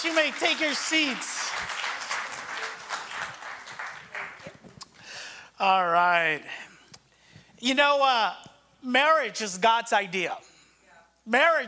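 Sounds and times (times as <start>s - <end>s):
speech: 0.0s - 1.8s, 5.6s - 6.6s, 7.6s - 10.5s, 11.2s - 11.6s
round of applause: 0.0s - 4.9s.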